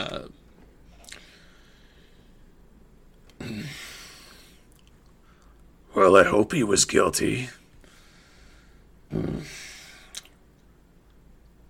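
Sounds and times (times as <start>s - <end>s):
speech: 0.0s - 0.4s, 6.1s - 7.6s
teeth gnashing: 4.6s - 5.7s, 10.0s - 11.2s.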